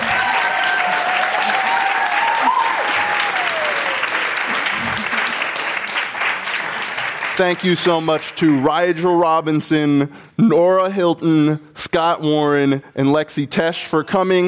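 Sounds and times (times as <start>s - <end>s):
audience applause: 0.0s - 8.7s
speech: 7.4s - 14.4s.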